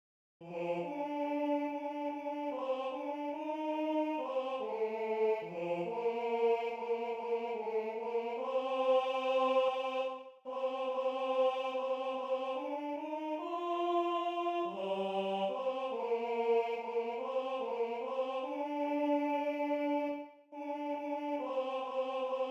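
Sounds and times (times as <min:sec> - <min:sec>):
first tenor voice singing: 0:00.4 - 0:22.4.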